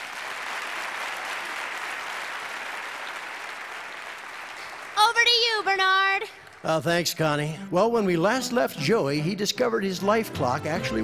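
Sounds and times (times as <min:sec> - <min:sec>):
audience applause: 0:00.0 - 0:07.3
speech: 0:05.2 - 0:11.0.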